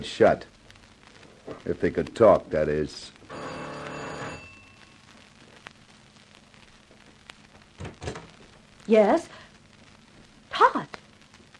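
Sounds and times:
speech: 0:00.0 - 0:00.6, 0:01.5 - 0:03.5, 0:08.9 - 0:09.4, 0:10.6 - 0:11.0
doorbell ringing: 0:03.3 - 0:04.9.

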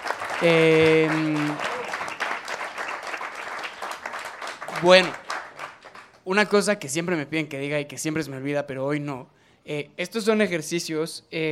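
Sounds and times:
audience applause: 0:00.0 - 0:06.2
speech: 0:00.4 - 0:01.7, 0:04.8 - 0:05.2, 0:06.3 - 0:11.5.

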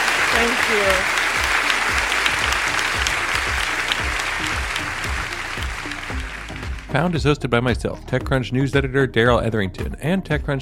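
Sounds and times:
audience round of applause: 0:00.0 - 0:07.0
speech: 0:00.4 - 0:01.2, 0:06.9 - 0:10.5.

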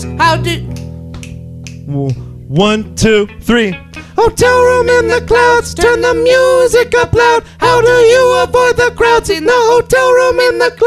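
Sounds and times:
speech: 0:00.1 - 0:00.7, 0:01.8 - 0:10.8
finger snap: 0:00.6 - 0:02.4.

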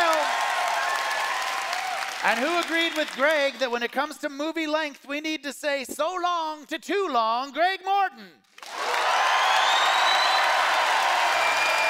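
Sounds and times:
audience applause: 0:00.0 - 0:03.6, 0:08.6 - 0:11.8
speech: 0:02.2 - 0:08.4.

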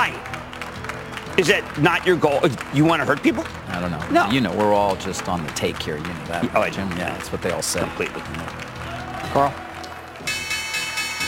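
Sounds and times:
speech: 0:01.4 - 0:09.7
stock exchange opening bell ringing: 0:10.3 - 0:11.2.

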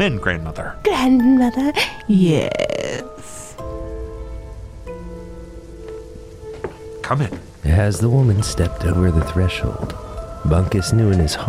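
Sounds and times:
speech: 0:00.0 - 0:03.0, 0:07.1 - 0:11.4
heavy rain: 0:03.2 - 0:11.4.

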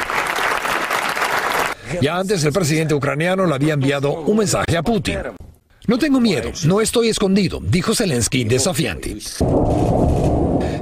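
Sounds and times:
parliament standing ovation applause: 0:00.0 - 0:01.8
speech: 0:01.9 - 0:10.2.

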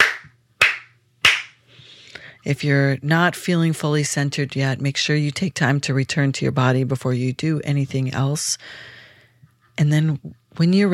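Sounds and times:
hand claps: 0:00.0 - 0:01.6
speech: 0:02.4 - 0:09.0, 0:09.8 - 0:10.9.

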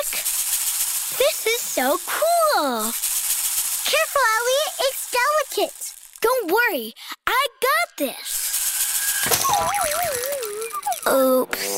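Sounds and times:
speech: 0:01.1 - 0:03.0, 0:03.9 - 0:08.4, 0:09.6 - 0:11.7
rain stick breaking: 0:08.8 - 0:11.1.

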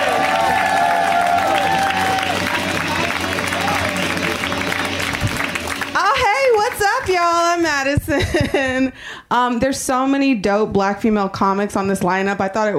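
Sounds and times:
audience clapping and cheering: 0:00.0 - 0:07.7
speech: 0:08.2 - 0:12.7.

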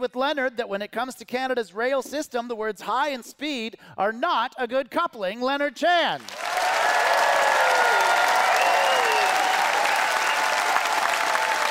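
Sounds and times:
speech: 0:00.0 - 0:06.4
audience applause: 0:06.2 - 0:11.6.

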